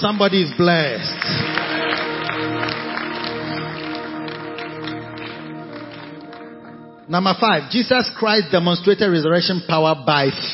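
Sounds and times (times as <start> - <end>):
speech: 0.0 - 1.6, 7.1 - 10.5
audience clapping: 0.0 - 7.6.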